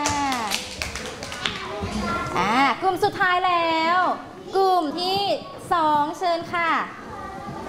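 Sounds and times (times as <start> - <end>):
classroom small group clapping: 0.0 - 2.0
speech: 1.8 - 7.0.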